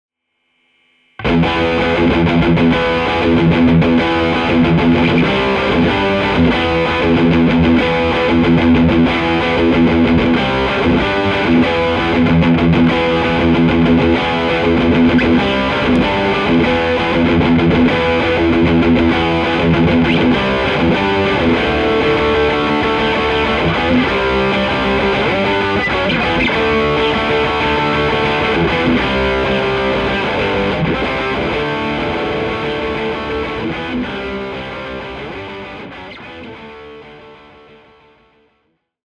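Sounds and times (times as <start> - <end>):
fat electric guitar: 1.2 - 38.5.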